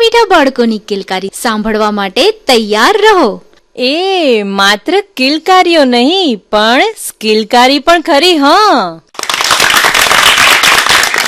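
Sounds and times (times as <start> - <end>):
speech: 0.1 - 9.2
audience clapping at a children's programme: 9.1 - 11.2.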